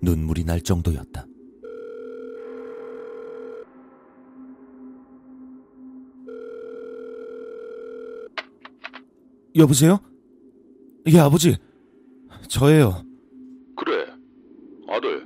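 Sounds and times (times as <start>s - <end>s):
speech: 0.0s - 1.2s, 9.6s - 10.1s, 11.0s - 11.7s, 12.4s - 13.1s
telephone ringback tone: 1.6s - 3.7s, 6.2s - 8.4s.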